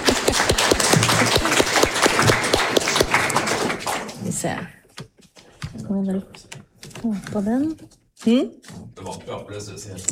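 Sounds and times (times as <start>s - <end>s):
audience applause: 0.0s - 4.3s
speech: 4.4s - 4.8s, 5.9s - 10.0s.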